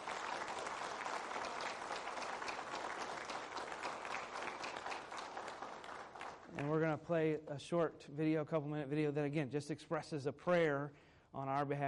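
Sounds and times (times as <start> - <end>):
audience applause for veterans: 0.0 - 6.9
speech: 6.6 - 11.8.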